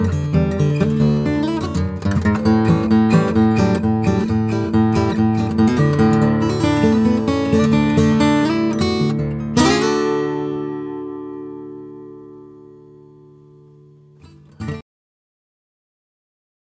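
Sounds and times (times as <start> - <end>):
guitar: 0.0 - 14.8.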